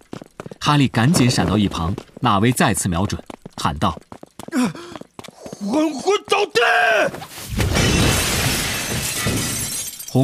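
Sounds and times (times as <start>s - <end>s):
speech: 0.6s - 5.0s, 5.6s - 7.5s
wall-hung glass-doored cabinet of hourglasses crashing to the floor: 7.5s - 10.2s
shattering and tinkling glass shards: 8.0s - 10.2s.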